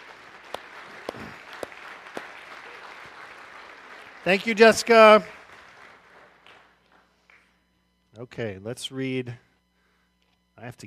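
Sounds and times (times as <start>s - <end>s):
audience clapping: 0.0s - 7.5s
speech: 4.2s - 5.4s, 8.3s - 9.5s, 10.6s - 10.8s.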